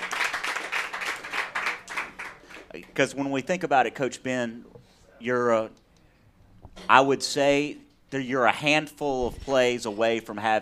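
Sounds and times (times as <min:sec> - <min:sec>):
round of applause: 0:00.0 - 0:02.8
speech: 0:02.8 - 0:05.8, 0:06.9 - 0:10.6.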